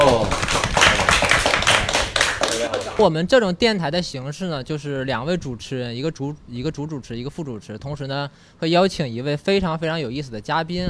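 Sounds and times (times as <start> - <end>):
studio audience applause: 0.0 - 3.1
speech: 3.0 - 10.8.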